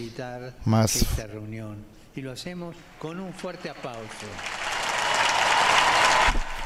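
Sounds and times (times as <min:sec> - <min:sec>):
speech: 0:00.0 - 0:04.7
crowd applause: 0:03.0 - 0:06.6.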